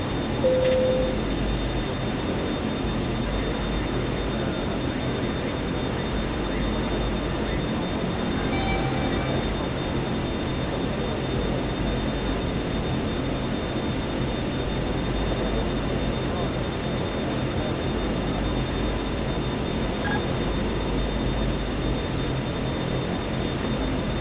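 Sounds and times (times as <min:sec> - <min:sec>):
onboard ambience: 0:00.0 - 0:24.2.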